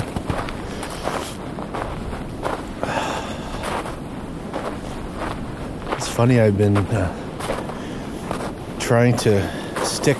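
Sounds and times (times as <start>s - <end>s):
footsteps crunching in deep snow: 0.0s - 10.1s
wind noise over the microphone: 0.0s - 10.1s
speech: 6.2s - 7.2s, 8.9s - 10.1s.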